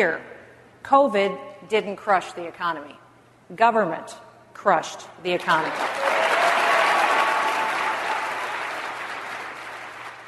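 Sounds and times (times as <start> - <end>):
speech: 0.0 - 6.0
prolonged audience ovation applause: 5.8 - 10.2.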